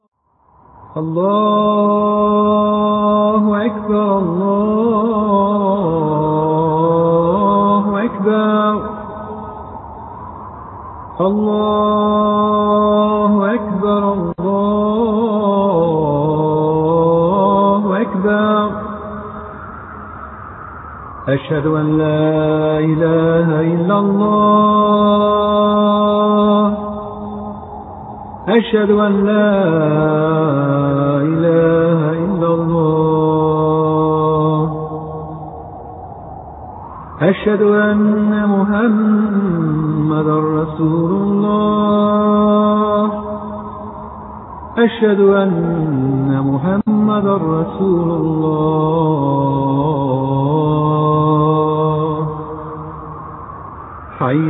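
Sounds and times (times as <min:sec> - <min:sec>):
Azan call to prayer: 0:01.0 - 0:09.6, 0:11.2 - 0:19.8, 0:21.2 - 0:27.8, 0:28.4 - 0:35.7, 0:37.2 - 0:53.3, 0:54.1 - 0:54.4.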